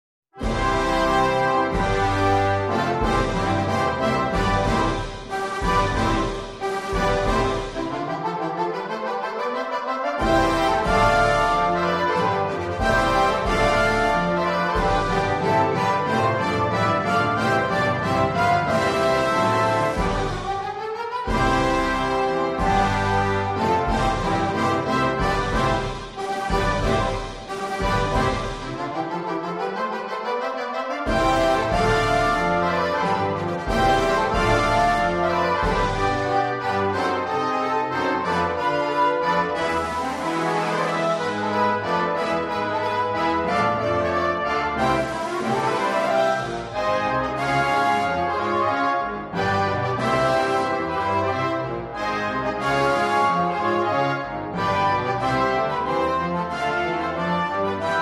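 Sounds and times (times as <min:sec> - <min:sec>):
coronation march fanfare: 0:00.4 - 0:58.0.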